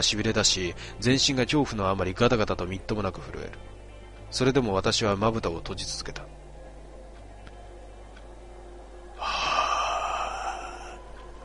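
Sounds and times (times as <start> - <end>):
speech: 0.0 - 6.4
creature exhaling breath: 9.2 - 11.0.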